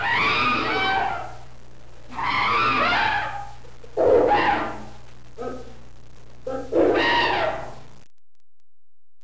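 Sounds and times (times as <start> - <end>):
chimpanzee: 0.0 - 1.3, 2.1 - 5.8, 6.4 - 7.8.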